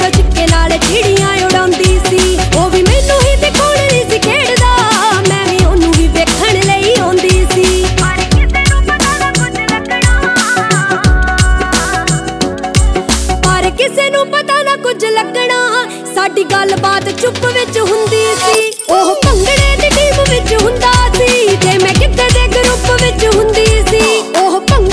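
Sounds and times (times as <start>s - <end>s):
Punjabi bhangra gidha ringtone: 0.0s - 24.9s.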